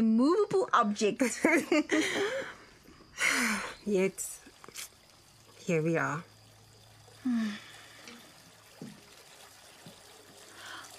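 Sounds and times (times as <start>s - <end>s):
speech: 0.0s - 2.6s, 3.2s - 4.9s, 5.7s - 6.3s, 7.2s - 7.7s
bath water running from tap: 3.4s - 10.9s.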